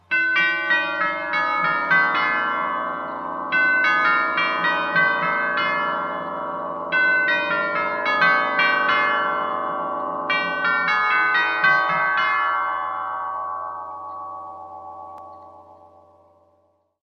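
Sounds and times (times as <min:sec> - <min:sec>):
Herschede clock chime melody: 0:00.0 - 0:16.8.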